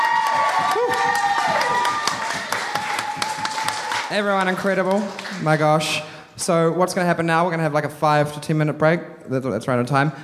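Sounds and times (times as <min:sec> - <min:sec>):
whoops and shouted voices: 0:00.0 - 0:04.1
audience applause: 0:00.0 - 0:05.8
speech: 0:00.6 - 0:01.8, 0:04.1 - 0:10.2.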